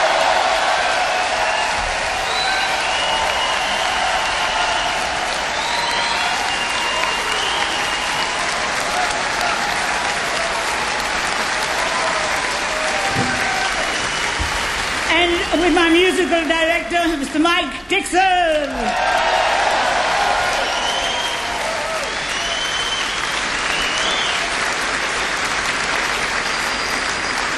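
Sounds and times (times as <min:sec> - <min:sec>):
faint cheering: 0:00.0 - 0:15.0, 0:18.6 - 0:24.6
audience applause for an orchestra: 0:00.0 - 0:17.6, 0:18.2 - 0:27.5.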